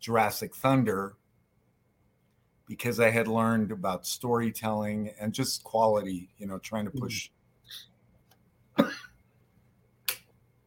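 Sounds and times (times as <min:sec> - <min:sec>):
speech: 0:00.0 - 0:01.2, 0:02.7 - 0:07.9
cough: 0:08.8 - 0:09.2.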